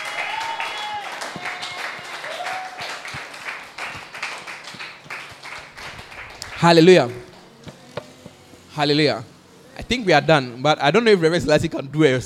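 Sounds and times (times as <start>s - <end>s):
voices shouting and cheering: 0.0s - 3.0s
audience clapping and applause: 0.0s - 7.5s
speech: 6.6s - 7.2s, 8.8s - 9.3s, 9.9s - 12.2s.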